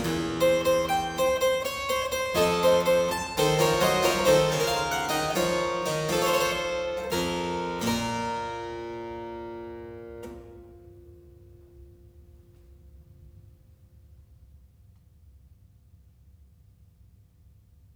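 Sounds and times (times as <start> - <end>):
three-part keyboard invention in B minor: 0.0 - 10.7.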